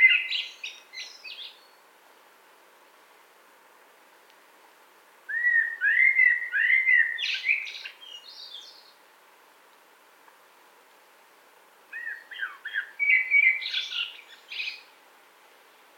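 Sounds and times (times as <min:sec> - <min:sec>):
common blackbird song: 0:00.0 - 0:01.8, 0:05.3 - 0:09.0, 0:11.9 - 0:14.9.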